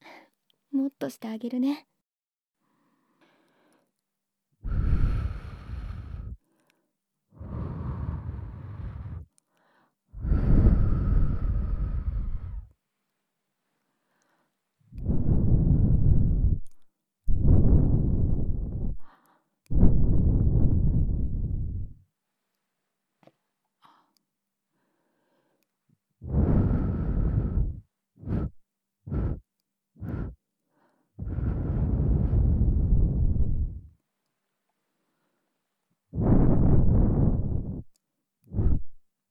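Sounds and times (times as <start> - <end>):
speech: 0.8 - 1.9
ASMR air blowing into the listener's ear: 4.6 - 6.4, 7.4 - 9.3, 10.2 - 12.7, 15.0 - 19.1, 19.7 - 22.0, 26.2 - 30.4, 31.2 - 33.9, 36.2 - 37.9, 38.5 - 39.0.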